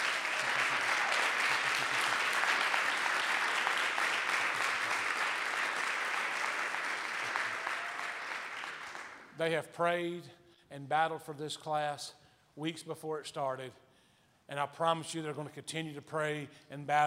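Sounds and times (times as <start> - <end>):
audience round of applause: 0.0 - 9.3
speech: 9.4 - 13.8, 14.5 - 17.0.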